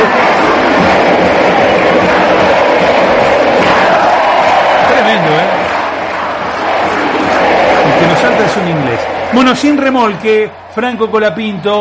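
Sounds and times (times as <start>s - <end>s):
Argentine football fans chanting stadium songs at the Marcelo Bielsa stadium: 0.0s - 10.7s
speech: 9.4s - 11.7s.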